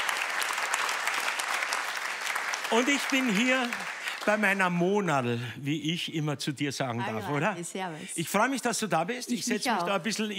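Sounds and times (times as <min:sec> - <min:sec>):
audience applause for a band: 0:00.0 - 0:05.4
speech: 0:02.7 - 0:10.3.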